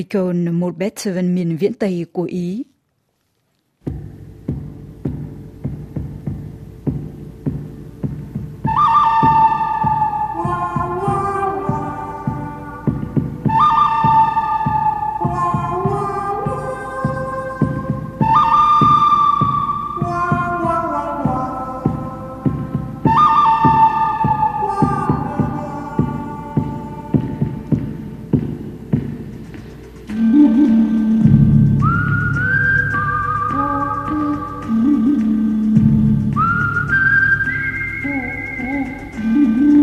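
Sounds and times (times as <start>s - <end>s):
speech: 0.0s - 2.7s, 3.8s - 4.2s
flute notes: 8.1s - 28.4s, 30.0s - 39.8s.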